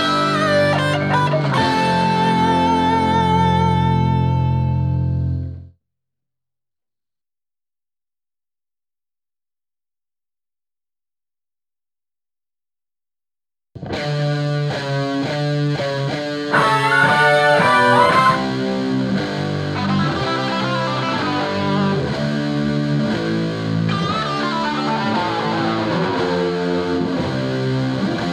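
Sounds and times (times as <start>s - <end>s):
guitars: 0.0s - 5.6s, 13.8s - 28.3s.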